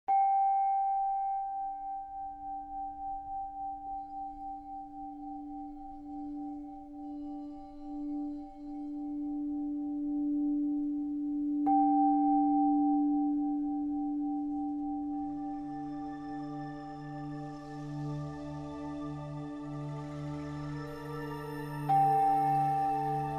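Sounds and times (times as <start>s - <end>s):
crystal singing bowl: 0.1s - 23.3s.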